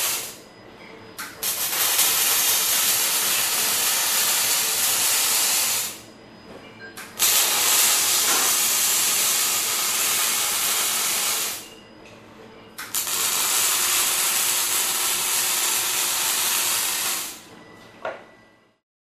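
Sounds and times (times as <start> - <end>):
electric welding: 0.0 - 0.4, 1.2 - 6.1, 7.0 - 11.7, 12.8 - 17.5.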